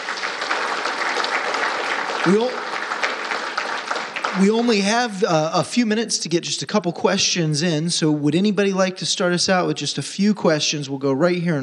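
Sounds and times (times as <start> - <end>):
audience applause: 0.0 - 5.4
speech: 2.2 - 2.6, 4.4 - 11.6.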